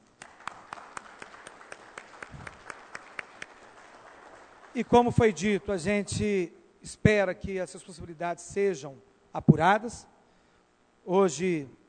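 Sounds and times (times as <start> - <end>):
round of applause: 0.0 - 5.4
speech: 4.8 - 10.1, 11.1 - 11.8.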